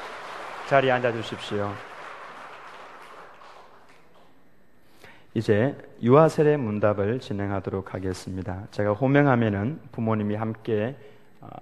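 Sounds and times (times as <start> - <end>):
audience applauding in a large room: 0.0 - 4.2
speech: 0.7 - 1.9, 5.3 - 11.6.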